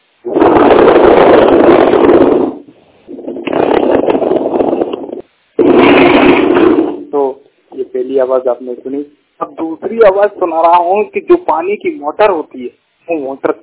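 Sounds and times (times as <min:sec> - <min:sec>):
plastic chairs being dragged across floor: 0:00.4 - 0:07.0
speech: 0:08.0 - 0:13.6.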